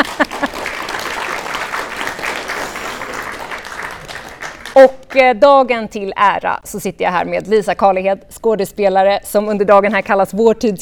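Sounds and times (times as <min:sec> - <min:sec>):
audience applause: 0:00.0 - 0:04.8
speech: 0:04.8 - 0:10.7.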